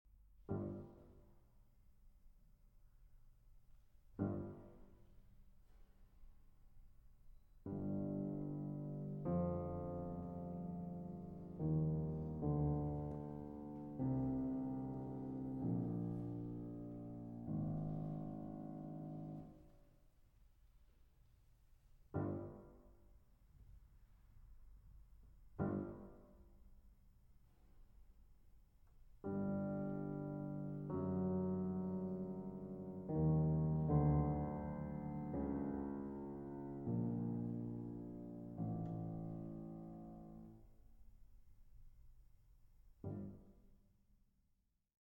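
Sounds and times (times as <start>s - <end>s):
piano sonata in B minor: 0.5s - 1.5s, 4.0s - 19.9s, 22.0s - 23.9s, 24.8s - 26.7s, 28.8s - 40.9s, 43.0s - 43.6s.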